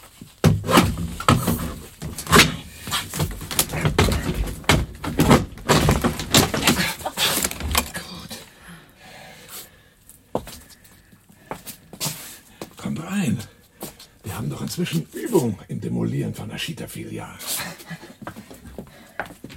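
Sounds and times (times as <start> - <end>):
garden shed door being levered up with a spade: 0.2 - 8.0
speech: 14.8 - 18.2.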